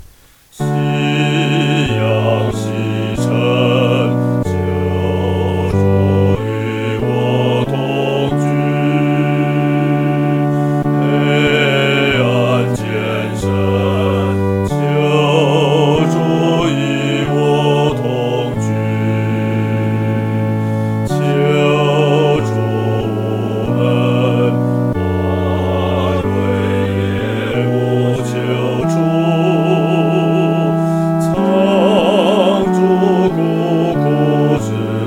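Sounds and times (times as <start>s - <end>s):
solo singing fourth voice: 0.5s - 35.0s.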